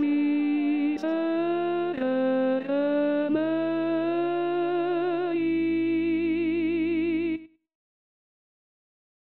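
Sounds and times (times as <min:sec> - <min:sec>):
contraltos singing: 0:00.0 - 0:07.2.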